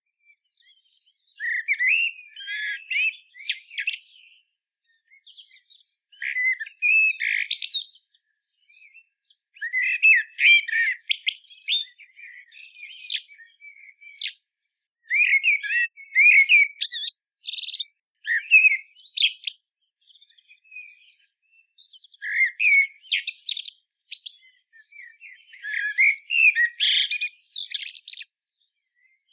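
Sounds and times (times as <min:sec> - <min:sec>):
common blackbird singing: 0:00.2 - 0:29.3.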